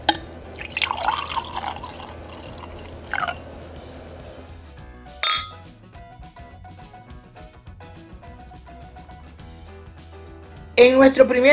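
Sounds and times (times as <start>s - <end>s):
glass clinking: 0.0s - 3.5s, 5.2s - 5.6s
wine pouring into a glass: 0.0s - 4.5s
speech: 10.8s - 11.5s.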